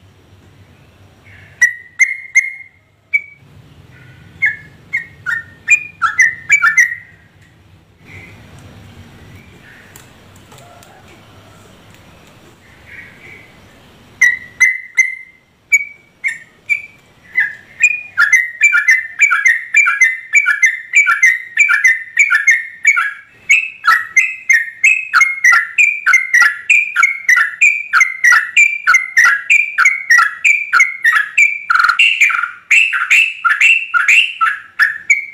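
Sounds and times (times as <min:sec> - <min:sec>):
Yellow-vented Bulbul song: 0:00.0 - 0:10.2, 0:12.0 - 0:35.3
low background hum: 0:00.0 - 0:35.3.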